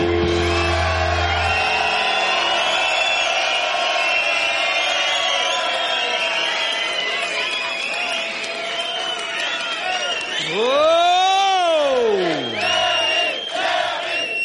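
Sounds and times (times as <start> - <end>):
audience applause: 0.1 - 14.4.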